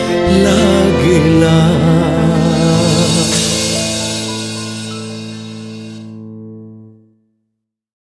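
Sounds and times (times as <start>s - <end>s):
sad version of an Odia song: 0.0s - 6.2s.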